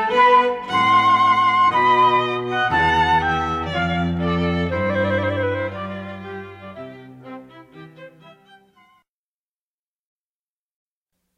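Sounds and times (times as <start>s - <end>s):
wedding march music: 0.0s - 9.0s.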